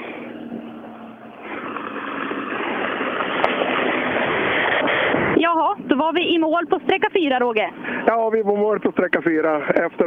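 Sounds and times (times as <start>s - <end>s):
rally car engine roaring: 0.0s - 8.4s
speech: 6.0s - 10.0s.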